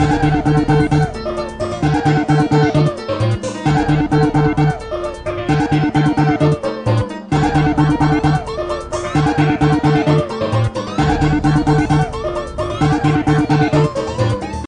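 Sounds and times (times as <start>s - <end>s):
rave to dub music: 0.0s - 14.6s.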